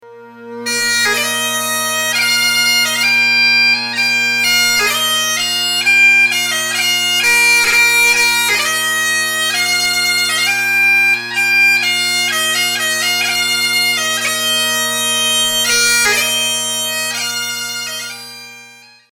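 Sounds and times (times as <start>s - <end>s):
bagpiper playing a trumpet voluntary: 0.0s - 19.1s.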